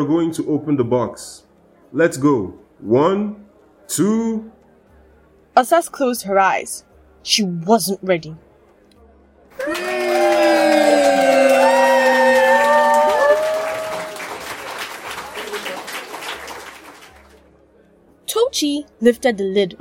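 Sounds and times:
speech: 0.0 - 4.6, 5.6 - 8.5, 9.6 - 9.9, 18.5 - 19.8
crowd cheering and screaming in uproar: 9.6 - 14.6.

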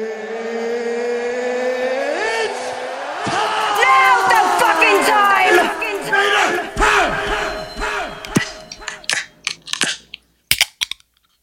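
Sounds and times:
loud crowd roaring and shouting: 0.0 - 9.2.

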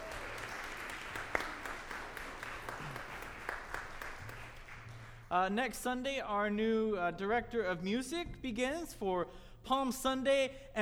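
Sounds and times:
roomful of people clapping: 0.0 - 5.3
speech: 5.3 - 10.8.

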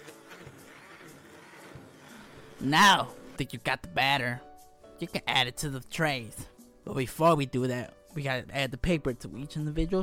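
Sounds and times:
blender whirring as it mixes cupcake batter: 0.0 - 3.4
speech: 2.6 - 10.0.

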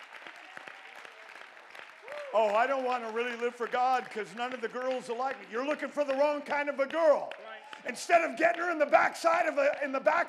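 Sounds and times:
audience clapping: 0.0 - 10.2
speech: 2.3 - 10.2.

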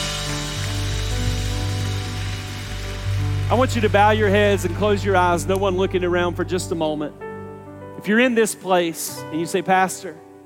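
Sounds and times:
audience clapping: 0.0 - 5.8
speech: 3.5 - 7.2, 8.0 - 10.3.

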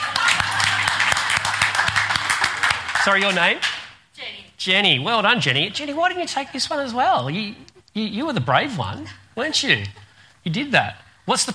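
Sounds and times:
audience clapping: 0.0 - 4.0
speech: 3.0 - 3.7, 4.6 - 11.5.

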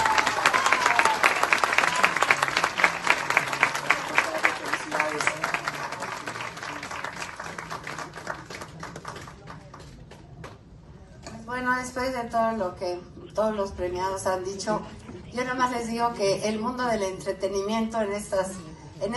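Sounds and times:
audience applause: 0.0 - 10.0
speech: 12.0 - 19.1.

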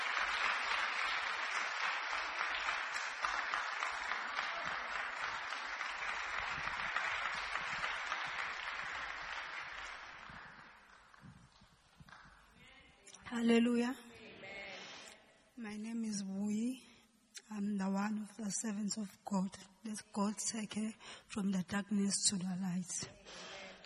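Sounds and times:
audience clapping hands: 0.0 - 12.6
speech: 13.3 - 14.1, 15.6 - 16.9, 17.5 - 23.5.

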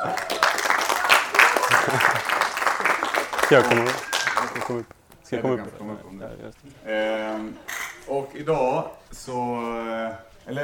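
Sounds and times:
audience applause: 0.0 - 4.9
speech: 3.5 - 4.1, 4.7 - 10.6.

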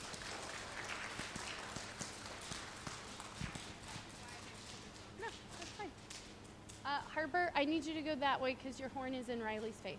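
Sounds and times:
round of applause for students: 0.0 - 2.6
speech: 6.9 - 9.9.

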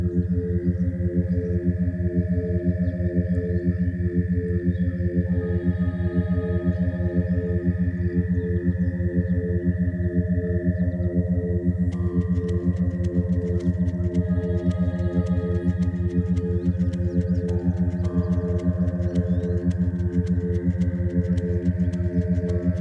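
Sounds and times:
87.3 Hz carrier binaural tone: 0.0 - 22.8
green frogs croaking in Annapolis Valley, Nova Scotia: 0.0 - 22.8.

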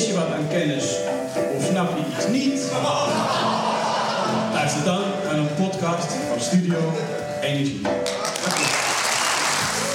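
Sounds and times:
speech: 0.0 - 3.3, 4.6 - 8.7
laughter: 2.6 - 4.9
applause: 8.0 - 9.9.

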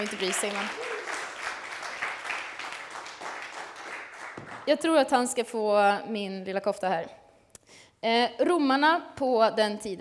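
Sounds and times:
speech: 0.0 - 0.9, 4.7 - 7.2, 8.0 - 10.0
audience applause: 0.0 - 4.7.

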